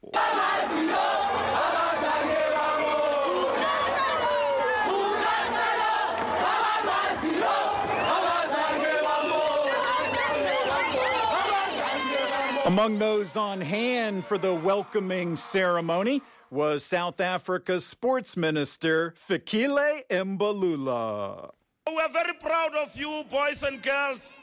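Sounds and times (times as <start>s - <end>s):
crowd cheering in airport terminal: 0.0s - 16.8s
speech: 12.7s - 24.4s.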